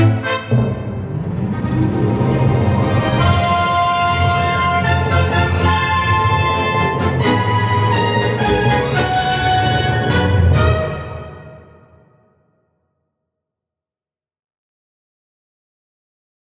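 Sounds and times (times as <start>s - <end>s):
brass instruments: 0.0s - 12.3s.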